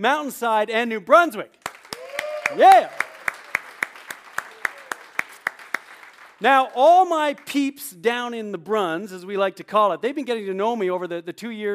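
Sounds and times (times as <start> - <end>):
speech: 0.0 - 1.6, 2.5 - 3.0, 6.4 - 11.7
audience clapping in a steady even rhythm: 1.6 - 7.6.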